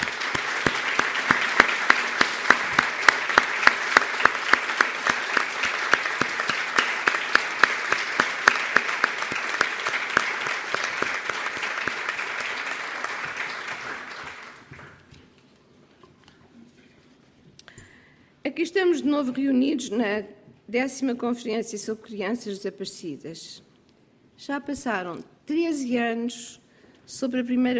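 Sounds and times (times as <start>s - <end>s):
audience applause: 0.0s - 15.0s
speech: 18.8s - 23.7s, 24.4s - 27.7s.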